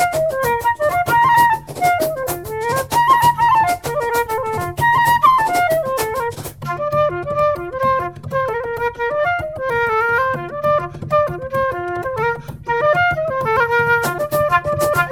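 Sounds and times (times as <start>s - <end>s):
fast hard shoe dancing: 0.0s - 6.8s, 13.3s - 15.1s
F flute: 0.0s - 15.1s
bodhran: 0.0s - 15.1s.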